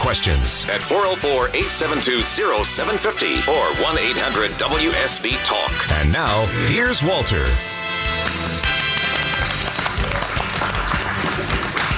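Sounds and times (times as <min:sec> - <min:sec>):
music: 0:00.0 - 0:11.9
speech: 0:00.1 - 0:07.8
seated audience clapping in an ovation: 0:08.0 - 0:11.9.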